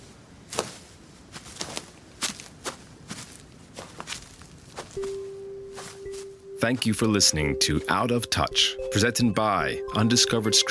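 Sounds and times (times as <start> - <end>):
footsteps walking into the forest: 0.0 - 7.0
speech: 6.6 - 10.6.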